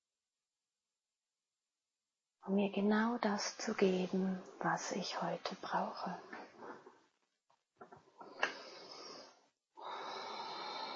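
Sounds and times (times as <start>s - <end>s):
speech: 2.4s - 6.4s
slow gentle deep breathing during a meditation: 8.2s - 10.9s.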